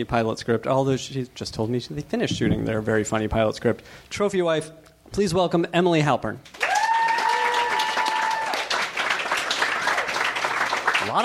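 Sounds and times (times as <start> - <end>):
speech: 0.0 - 6.6
audience applause: 6.5 - 11.2
people cheering: 6.6 - 11.2.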